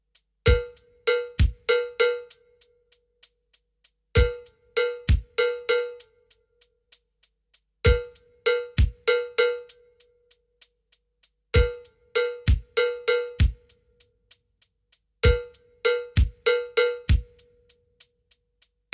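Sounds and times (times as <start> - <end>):
slow standard twelve-pulse bell pattern: 0.5 - 2.3, 4.2 - 6.0, 7.9 - 9.7, 11.6 - 13.4, 15.3 - 17.3.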